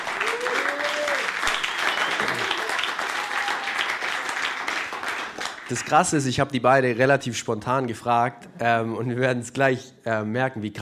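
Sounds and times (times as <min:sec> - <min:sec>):
cheer: 0:00.0 - 0:04.5
audience applauding: 0:00.0 - 0:06.2
speech: 0:05.7 - 0:10.8.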